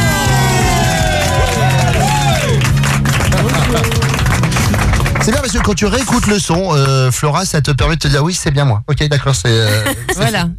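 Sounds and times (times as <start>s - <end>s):
crowd whoops and cheers: 0.0s - 4.5s
crowd applause: 0.0s - 7.1s
speech: 5.5s - 10.5s.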